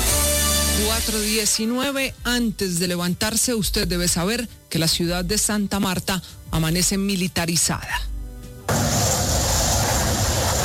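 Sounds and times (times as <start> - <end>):
speech: 0.8 - 8.1
Kfir military jet aircraft flying overhead: 8.7 - 10.6.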